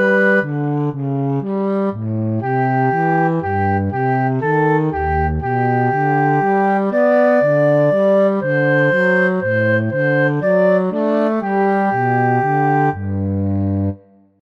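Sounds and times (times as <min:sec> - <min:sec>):
instrumental flute: 0:00.0 - 0:01.0, 0:02.4 - 0:13.4
instrumental cello: 0:00.0 - 0:14.2.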